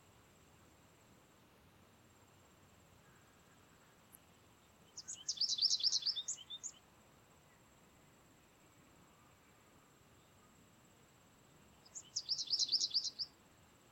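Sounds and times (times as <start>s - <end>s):
American Goldfinch Carduelis tristis twittering calls: 4.8s - 6.8s, 11.8s - 13.4s.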